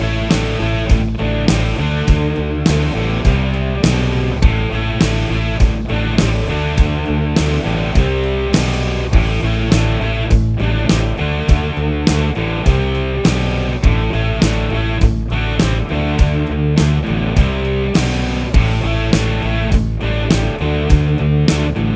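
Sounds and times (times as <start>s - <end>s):
hard rock electric guitar sound: 0.0s - 21.9s.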